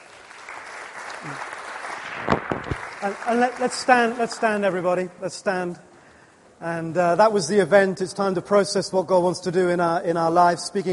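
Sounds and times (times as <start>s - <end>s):
audience applause: 0.0s - 4.6s
speech: 1.2s - 1.6s, 3.0s - 5.9s, 6.6s - 10.9s.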